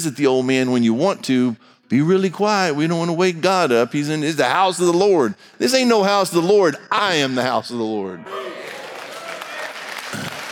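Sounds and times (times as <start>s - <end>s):
speech: 0.0s - 8.5s
audience clapping: 8.3s - 10.5s.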